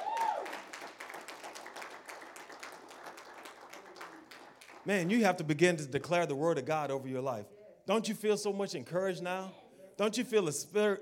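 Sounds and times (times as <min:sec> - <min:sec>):
audience clapping hands: 0:00.0 - 0:05.5
speech: 0:04.8 - 0:11.0.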